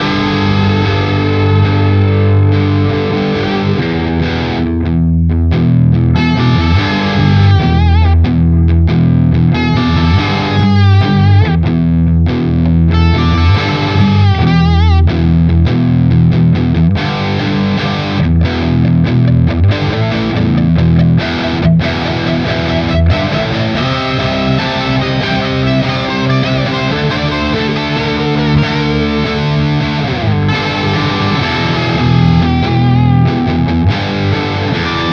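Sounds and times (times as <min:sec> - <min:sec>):
Maybach Lester Junior Double Cut guitar on bridge pickup with gain: 0:00.0 - 0:35.1.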